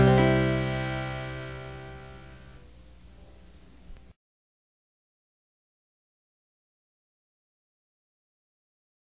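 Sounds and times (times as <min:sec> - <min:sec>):
keyboard fugue: 0:00.0 - 0:02.6.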